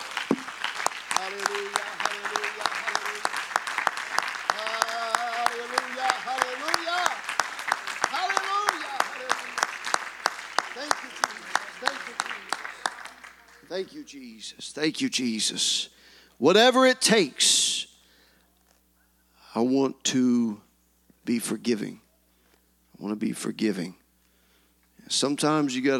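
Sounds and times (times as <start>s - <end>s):
audience applauding: 0.0s - 14.1s
speech: 13.8s - 17.6s, 19.6s - 20.6s, 21.3s - 22.0s, 23.0s - 24.0s, 25.1s - 25.9s.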